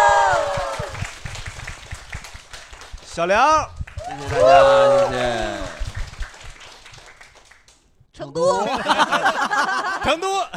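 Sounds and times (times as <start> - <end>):
audience applause at a live show in Chengdu: 0.0 - 7.8
speech: 3.2 - 5.6, 8.2 - 10.5
laughter: 4.2 - 5.8, 8.4 - 10.5.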